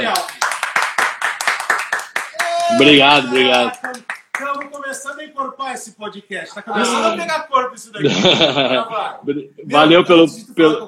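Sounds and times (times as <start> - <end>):
loud audience applause: 0.0 - 4.6
speech: 2.7 - 10.8
laughter: 8.0 - 9.7.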